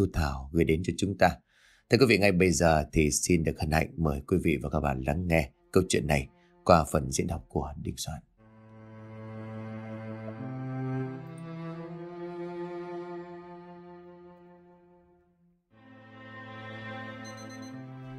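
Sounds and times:
speech: 0.0s - 8.3s
small alarm clock ringing on a table: 17.2s - 17.8s.

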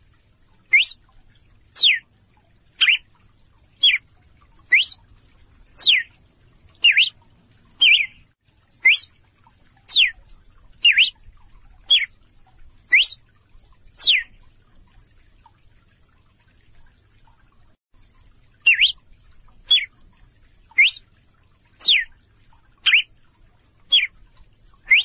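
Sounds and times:
female red-cowled cardinal calling in clear short whistles: 0.7s - 1.0s, 1.8s - 2.0s, 2.8s - 3.0s, 4.7s - 5.0s, 5.8s - 6.1s, 6.8s - 7.1s, 7.8s - 8.1s, 8.8s - 9.1s, 9.9s - 10.1s, 10.8s - 11.1s, 12.9s - 13.2s, 18.7s - 18.9s, 20.8s - 21.0s, 21.8s - 22.0s, 22.8s - 23.0s, 24.9s - 25.0s.

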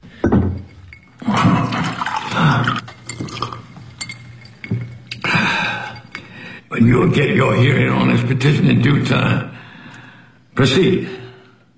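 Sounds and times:
glass clinking: 0.0s - 6.7s
water pouring into a glass: 0.2s - 6.7s
speech: 6.8s - 9.6s, 10.6s - 11.2s.

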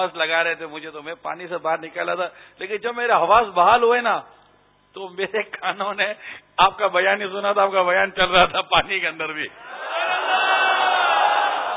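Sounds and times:
speech: 0.0s - 4.4s, 5.0s - 10.4s
crowd shouting a religious slogan in unison: 9.7s - 11.7s.

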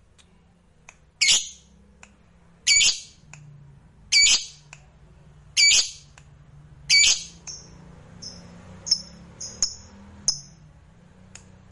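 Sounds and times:
lovebird squawking and chirping: 1.2s - 1.6s, 2.7s - 3.2s, 4.1s - 4.6s, 5.6s - 6.1s, 6.9s - 7.6s.

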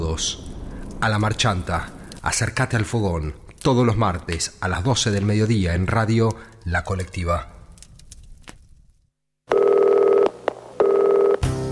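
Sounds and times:
speech: 0.2s - 0.4s, 1.0s - 7.6s
telephone dialing tones, long loud steady electronic beeps: 9.5s - 11.4s.

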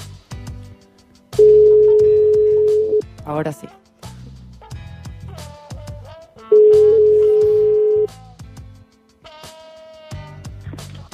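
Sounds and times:
telephone ringing tone on a call to the Albaicín: 1.4s - 3.0s, 6.5s - 8.1s
speech: 3.3s - 3.9s.

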